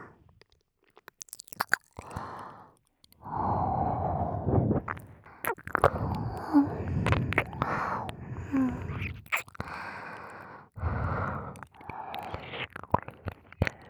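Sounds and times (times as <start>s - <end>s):
ASMR ear licking: 0.9s - 2.4s, 3.0s - 10.4s, 11.1s - 13.8s
ASMR whispering: 5.8s - 9.4s.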